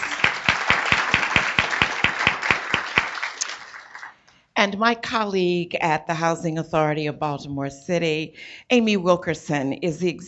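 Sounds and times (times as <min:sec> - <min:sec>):
audience applause: 0:00.0 - 0:04.2
sharp rhythmic claps: 0:00.0 - 0:04.3
speech: 0:04.6 - 0:10.2.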